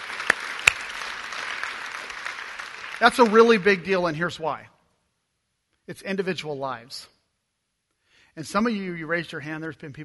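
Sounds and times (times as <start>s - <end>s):
audience clapping: 0.0s - 4.0s
speech: 3.0s - 4.8s, 5.9s - 7.2s, 8.4s - 10.0s.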